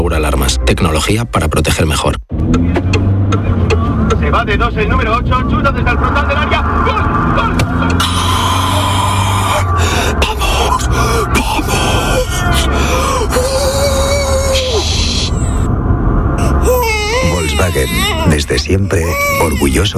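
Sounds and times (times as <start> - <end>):
speech: 0.0 - 2.8, 4.3 - 8.2, 17.6 - 19.9
car engine rumble: 2.3 - 19.9
baby crying after waking in car: 8.0 - 15.6, 16.4 - 19.9.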